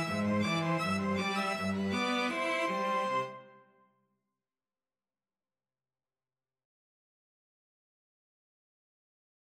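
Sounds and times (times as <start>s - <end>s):
two violins and cello playing: 0.0s - 3.5s.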